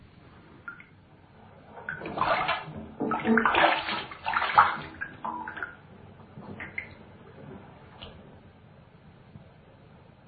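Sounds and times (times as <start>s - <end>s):
bathwater running into a bathtub: 1.6s - 7.0s.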